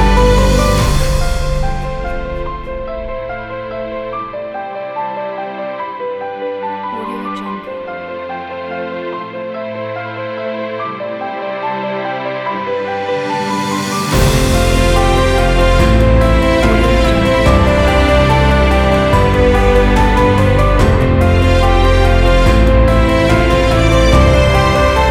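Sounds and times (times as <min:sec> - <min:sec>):
cinematic orchestra: 0:00.0 - 0:04.5, 0:07.0 - 0:25.0
emotional piano: 0:00.0 - 0:25.0.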